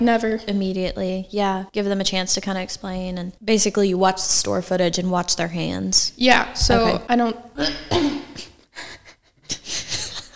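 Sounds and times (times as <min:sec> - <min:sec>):
speech: 0:00.0 - 0:09.0
person coughing: 0:07.6 - 0:08.6.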